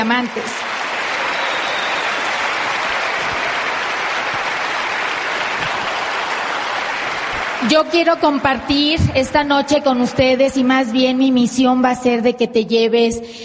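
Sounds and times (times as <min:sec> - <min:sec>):
speech: 0:00.0 - 0:00.8, 0:07.6 - 0:13.4
audience applause: 0:00.0 - 0:08.5.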